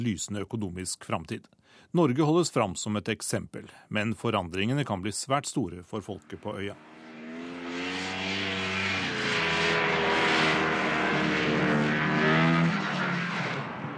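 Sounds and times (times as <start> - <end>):
speech: 0.0 - 7.0
snowmobiles driving across sea ice: 6.2 - 13.9.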